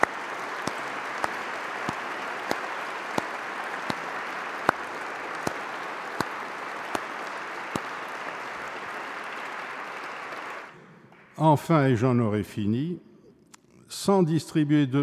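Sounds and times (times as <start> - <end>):
audience applause: 0.0 - 10.8
speech: 11.4 - 13.1, 14.0 - 15.0.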